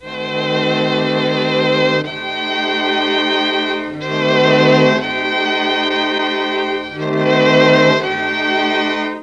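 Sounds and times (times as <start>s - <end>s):
Mellotron note E4: 0.0s - 9.2s.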